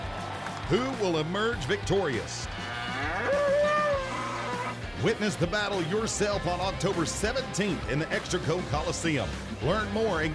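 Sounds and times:
speech: 0.7 - 3.5, 5.0 - 10.3
Mexican fighting bull bellowing: 2.6 - 4.8.

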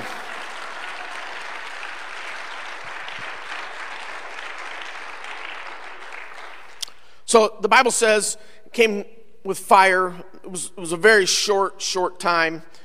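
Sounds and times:
audience hand clap of praise: 0.0 - 7.1
speech: 7.3 - 12.8.

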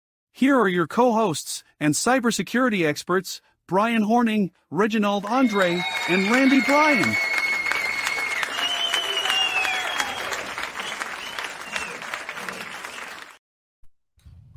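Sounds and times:
speech: 0.4 - 7.4
AI-generated live studio audience applause: 5.2 - 13.4.

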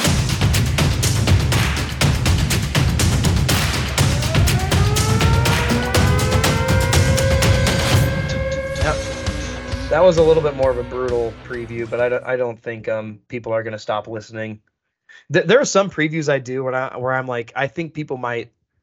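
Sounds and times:
intro music opening a sports game preview segment: 0.0 - 12.2
speech: 10.0 - 18.6.

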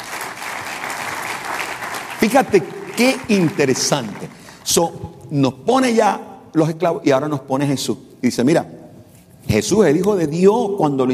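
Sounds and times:
audience applause: 0.0 - 4.8
speech: 2.2 - 8.8, 9.4 - 11.1.

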